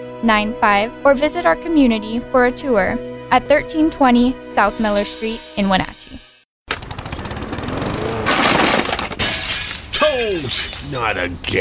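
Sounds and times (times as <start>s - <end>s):
speech: 0.2s - 6.1s, 10.2s - 11.6s
window glass shattering: 8.2s - 11.1s.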